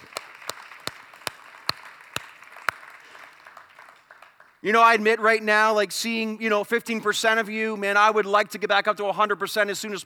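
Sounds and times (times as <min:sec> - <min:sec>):
audience clapping: 0:00.0 - 0:05.0
speech: 0:04.6 - 0:10.0.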